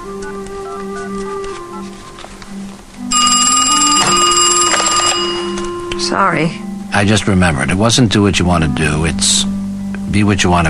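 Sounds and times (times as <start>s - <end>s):
cordless phone dialing tones: 0.1s - 6.1s
cordless phone ringing: 3.0s - 6.6s
speech: 6.1s - 10.6s.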